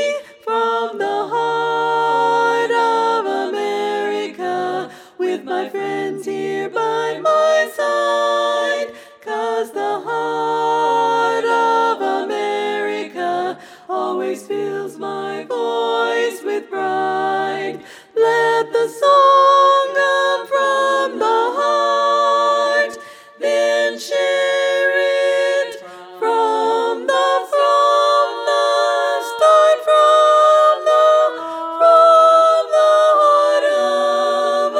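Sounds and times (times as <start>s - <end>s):
tenor singing a regional song: 0.0s - 34.7s.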